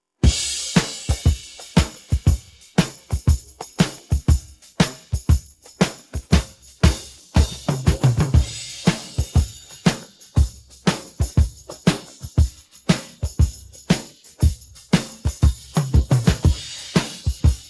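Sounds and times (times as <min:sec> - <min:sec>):
drum pattern: 0:00.2 - 0:17.6.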